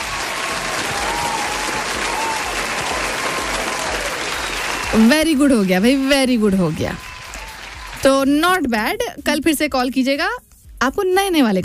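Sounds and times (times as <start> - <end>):
applause: 0.0 - 8.3
speech: 4.9 - 7.1, 8.0 - 11.6.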